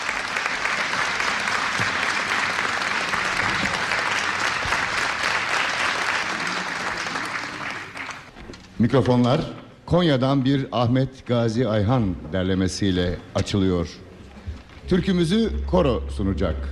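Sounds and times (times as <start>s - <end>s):
audience applauding a choir and its conductor at a Turkish folk song concert: 0.0s - 8.4s
speech: 8.8s - 14.0s, 14.9s - 16.6s.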